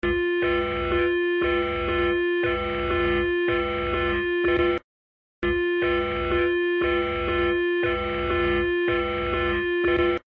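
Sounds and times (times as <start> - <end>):
Ukrainian EAS alarm: 0.0 - 4.8, 5.4 - 10.2.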